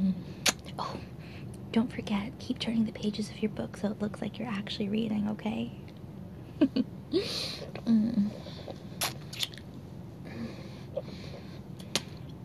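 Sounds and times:
low hums: 0:00.0 - 0:12.4
speech: 0:01.8 - 0:05.8, 0:06.6 - 0:08.6
wet sucking and smacking: 0:07.6 - 0:09.8, 0:10.8 - 0:12.4.

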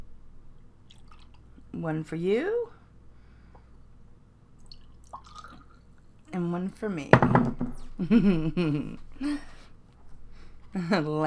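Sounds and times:
drink being poured: 0:00.8 - 0:01.5, 0:04.6 - 0:05.9
speech: 0:01.7 - 0:02.7, 0:06.4 - 0:09.5, 0:10.8 - 0:11.2.

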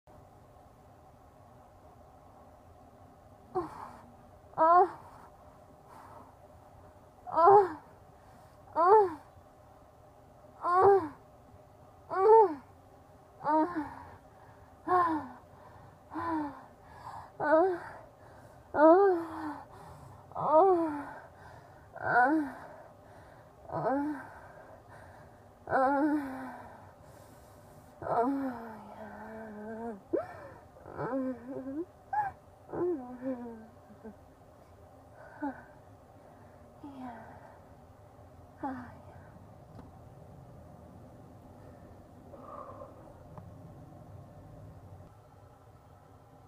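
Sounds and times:
woman orgasm moans: 0:03.5 - 0:05.1, 0:07.3 - 0:07.9, 0:08.7 - 0:09.3, 0:10.6 - 0:11.2, 0:13.4 - 0:14.2, 0:14.8 - 0:15.4, 0:17.4 - 0:18.0, 0:18.7 - 0:19.7, 0:20.3 - 0:21.3, 0:22.0 - 0:22.7, 0:23.7 - 0:24.5, 0:25.7 - 0:26.8, 0:28.0 - 0:34.2.

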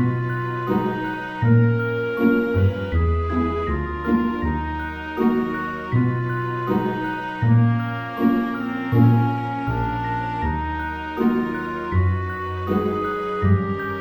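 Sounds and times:
cello music: 0:00.0 - 0:13.9.

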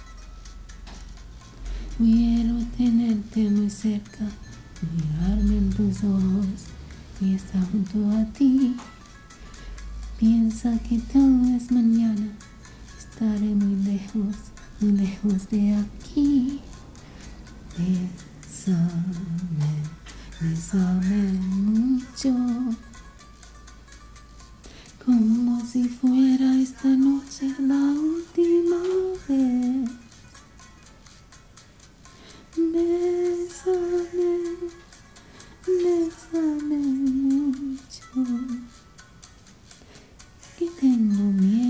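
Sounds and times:
karaoke singing: 0:01.7 - 0:09.0, 0:09.6 - 0:16.9, 0:17.6 - 0:22.9, 0:25.0 - 0:30.2, 0:32.6 - 0:35.0, 0:35.6 - 0:38.8, 0:40.4 - 0:41.6.

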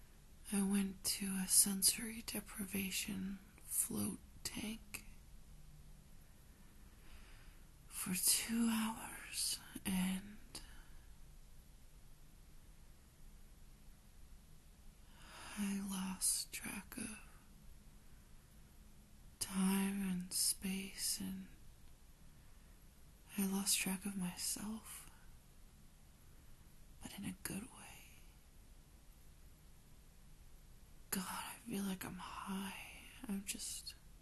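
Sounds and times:
lullaby: 0:00.4 - 0:05.2, 0:07.0 - 0:11.2, 0:15.0 - 0:17.5, 0:19.3 - 0:21.6, 0:23.2 - 0:25.4, 0:27.0 - 0:28.4, 0:31.1 - 0:34.2
soft voice: 0:00.5 - 0:05.2, 0:07.9 - 0:10.8, 0:15.5 - 0:17.4, 0:19.4 - 0:21.6, 0:23.3 - 0:25.0, 0:27.0 - 0:28.2, 0:31.1 - 0:34.0.

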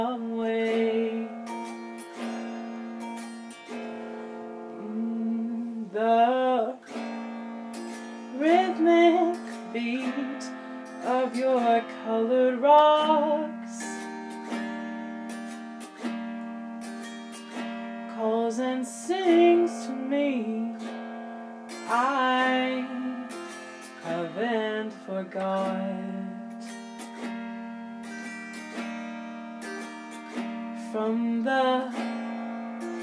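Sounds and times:
person singing an original song: 0:00.0 - 0:02.4, 0:04.7 - 0:07.2, 0:08.3 - 0:14.5, 0:18.1 - 0:21.1, 0:21.7 - 0:27.1, 0:29.6 - 0:33.0
autoharp: 0:00.0 - 0:33.0.

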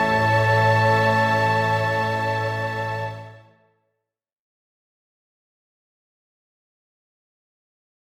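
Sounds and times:
nature ensemble remix music: 0:00.0 - 0:03.3.

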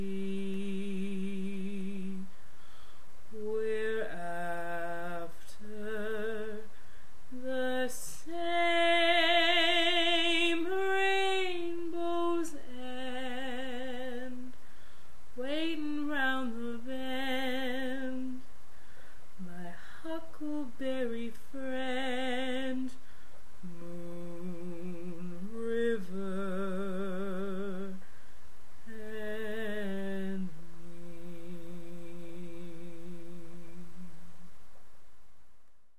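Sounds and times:
person singing a cappella cover: 0:00.0 - 0:02.4, 0:03.3 - 0:14.6, 0:15.4 - 0:18.5, 0:19.4 - 0:28.1, 0:28.8 - 0:34.2.

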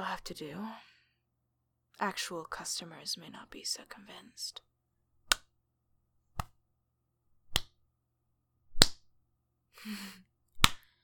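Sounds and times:
speech: 0:00.1 - 0:00.9, 0:02.0 - 0:04.7, 0:09.8 - 0:10.3
hand smacking skin: 0:05.2 - 0:05.5, 0:06.3 - 0:06.6, 0:07.5 - 0:07.8, 0:08.7 - 0:09.1, 0:10.6 - 0:10.8.

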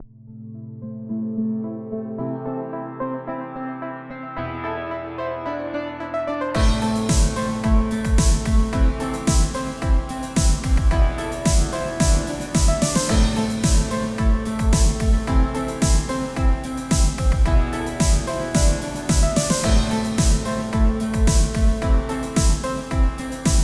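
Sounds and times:
pianos: 0:00.3 - 0:23.6
snare drums: 0:06.6 - 0:23.6.

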